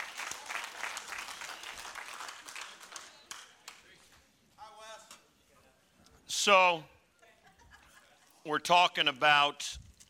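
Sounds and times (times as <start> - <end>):
audience applauding: 0.0 - 3.8
speech: 6.4 - 6.9, 8.4 - 9.9
laughter: 7.2 - 8.5.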